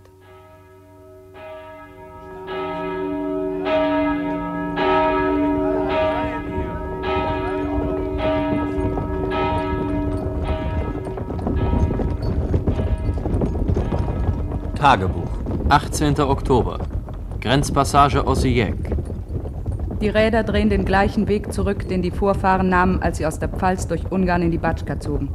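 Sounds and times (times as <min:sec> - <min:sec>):
church bells pealing in the village of Rajewo-Selo: 0:00.0 - 0:15.2
harnessed horses pulling away clip-clopping: 0:01.4 - 0:25.3
speech: 0:14.8 - 0:18.9, 0:20.0 - 0:25.3.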